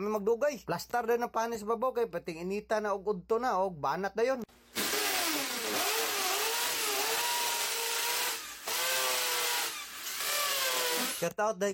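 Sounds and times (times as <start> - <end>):
speech: 0.0 - 4.8, 11.2 - 11.7
small multicab engine revving while reversing: 4.8 - 11.2.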